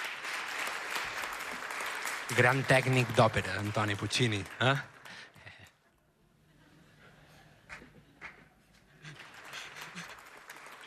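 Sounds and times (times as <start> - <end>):
audience applauding a joke: 0.0 - 5.7, 8.2 - 10.8
speech: 2.3 - 5.0.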